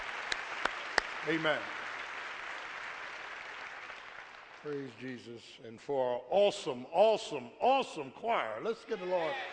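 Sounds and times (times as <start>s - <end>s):
audience clapping hands: 0.0s - 5.6s
speech: 1.2s - 1.8s, 4.6s - 9.5s.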